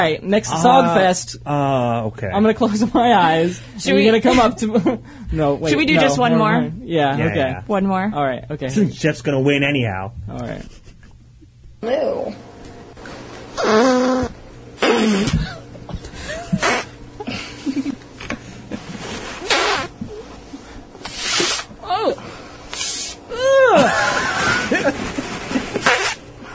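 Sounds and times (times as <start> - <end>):
speech: 0.0 - 10.8, 11.8 - 12.5, 13.6 - 14.3
laughter: 4.2 - 5.0, 10.5 - 11.2, 15.2 - 19.1, 23.4 - 26.2
farts: 13.6 - 15.5, 16.5 - 17.0, 19.2 - 20.1, 21.0 - 21.7, 25.6 - 26.3.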